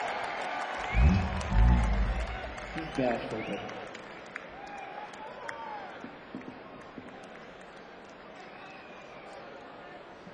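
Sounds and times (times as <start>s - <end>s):
crowd applauding: 0.0s - 9.4s
low rumble: 0.8s - 3.0s
speech: 3.0s - 3.8s.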